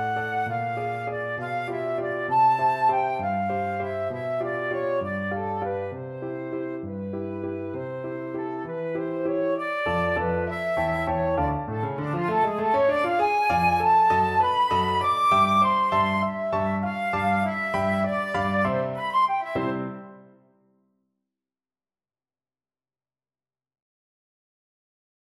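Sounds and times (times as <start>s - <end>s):
oboe playing a waltz: 0.0s - 20.2s.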